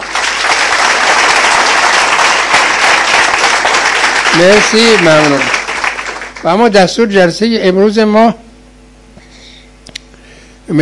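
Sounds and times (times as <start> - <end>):
women at a group meeting clapping: 0.0 - 6.9
speech: 4.4 - 5.5, 6.4 - 8.4.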